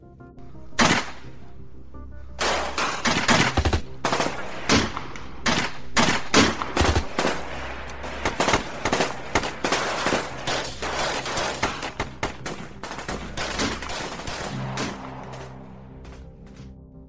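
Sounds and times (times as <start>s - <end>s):
rapid gunfire in a shootout: 2.4s - 15.2s.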